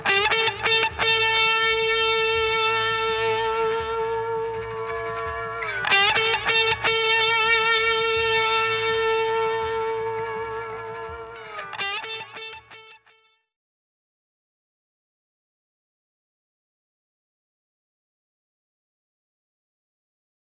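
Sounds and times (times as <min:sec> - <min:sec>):
guitar through Castledine 9v Overdriver pedal: 0:00.0 - 0:13.4.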